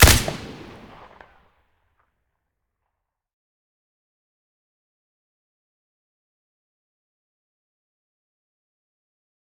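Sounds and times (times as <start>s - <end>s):
AK-103 rifle with silencer firing: 0.0s - 1.2s.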